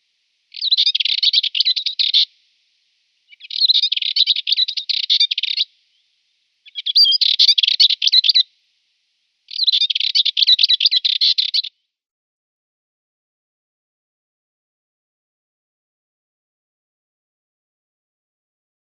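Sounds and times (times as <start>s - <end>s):
Dartford Warbler singing: 0.5s - 2.3s, 3.3s - 6.0s, 6.6s - 8.4s, 9.5s - 11.7s.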